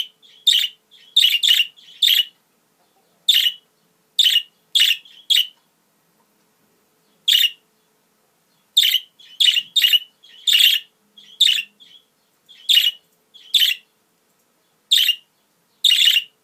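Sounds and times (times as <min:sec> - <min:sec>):
budgerigar calls: 0:00.0 - 0:02.4, 0:03.3 - 0:05.6, 0:07.1 - 0:07.6, 0:08.7 - 0:13.9, 0:14.9 - 0:16.4.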